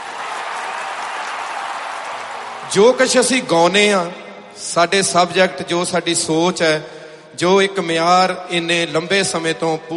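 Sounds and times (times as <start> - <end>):
audience applause at a Punjabi music performance: 0.0 - 3.1
speech: 2.7 - 9.9.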